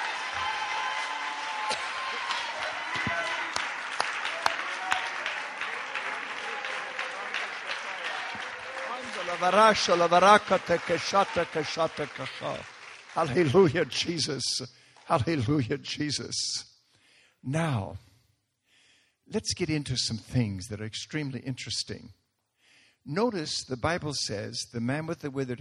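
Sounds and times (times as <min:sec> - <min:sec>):
audience shouting: 0:00.0 - 0:12.6
audience clapping hands: 0:00.0 - 0:15.6
speech: 0:09.4 - 0:16.7, 0:17.4 - 0:18.1, 0:19.3 - 0:22.2, 0:23.0 - 0:25.6.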